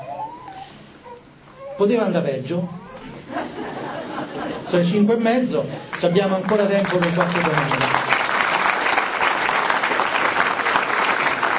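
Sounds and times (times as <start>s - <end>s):
speech: 1.8s - 3.8s, 4.6s - 8.1s
laughter: 3.0s - 4.8s
audience applause: 5.9s - 11.5s.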